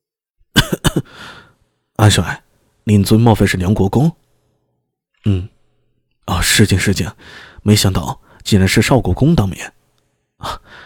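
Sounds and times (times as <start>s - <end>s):
person coughing: 0.5s - 1.2s
speech: 1.0s - 4.2s, 5.2s - 5.6s, 6.3s - 9.8s, 10.4s - 10.8s.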